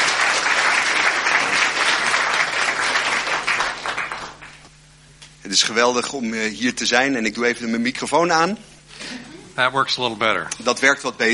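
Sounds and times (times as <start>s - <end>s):
audience applause: 0.0s - 4.7s
speech: 5.5s - 8.7s, 9.6s - 11.3s.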